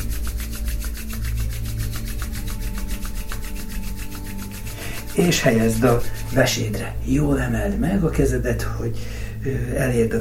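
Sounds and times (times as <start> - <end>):
palms rubbed together vigorously: 0.0 - 7.0
speech: 5.2 - 10.2.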